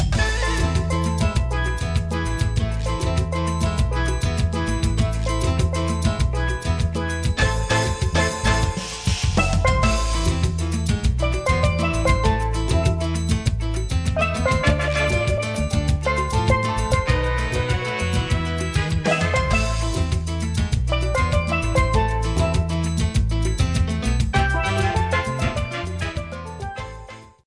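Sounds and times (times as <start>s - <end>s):
pan struck: 0.1s - 27.1s
guitar: 0.1s - 27.4s.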